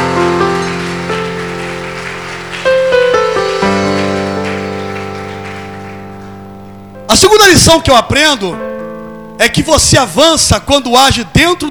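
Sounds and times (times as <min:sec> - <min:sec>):
audience applauding loudly: 0:00.0 - 0:06.7
sustained keyboard chords: 0:00.0 - 0:11.6
speech: 0:07.1 - 0:08.6, 0:09.4 - 0:11.6.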